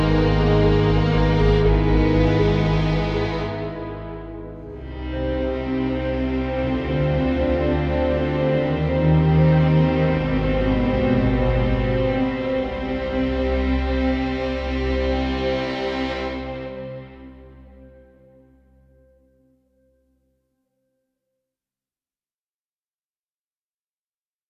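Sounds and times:
worried ambient music: 0:00.0 - 0:18.8.

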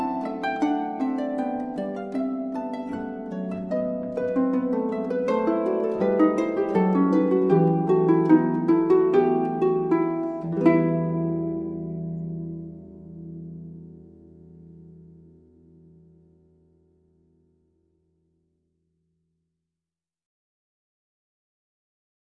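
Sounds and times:
lute bourrée in E minor: 0:00.0 - 0:16.1.

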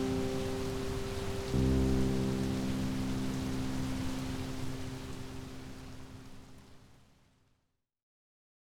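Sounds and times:
calming piano music: 0:00.0 - 0:06.8
rain: 0:00.0 - 0:07.7.

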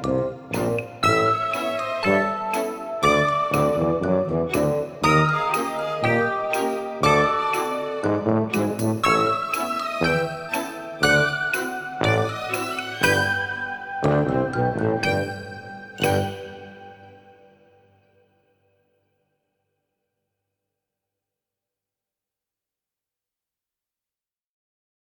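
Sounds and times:
drunk ambient music: 0:00.0 - 0:18.2.

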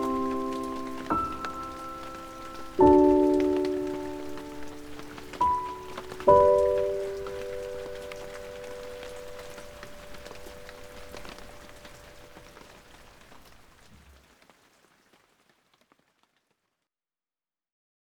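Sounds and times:
piano: 0:00.0 - 0:13.6
rain: 0:00.0 - 0:16.3.

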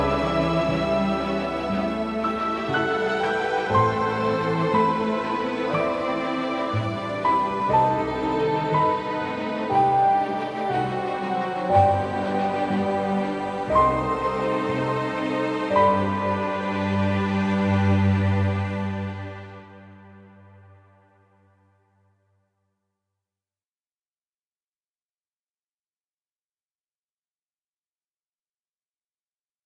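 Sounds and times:
adorable ambient music: 0:00.0 - 0:22.1.

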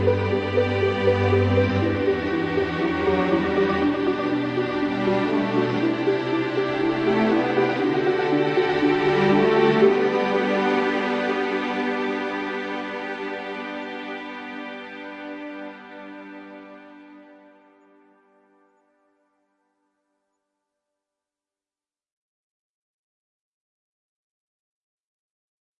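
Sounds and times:
vibrant ambient music: 0:00.0 - 0:18.9.

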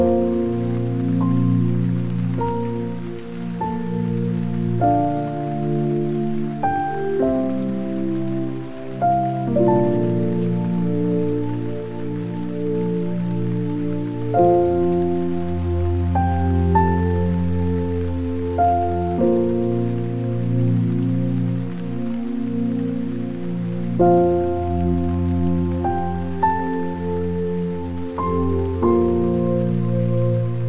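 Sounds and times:
piano music for dreaming: 0:00.0 - 0:30.6
rain: 0:00.0 - 0:30.6.

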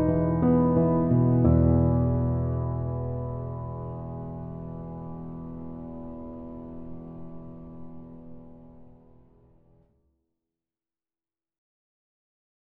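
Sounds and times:
thinking piano study music: 0:00.0 - 0:09.6.

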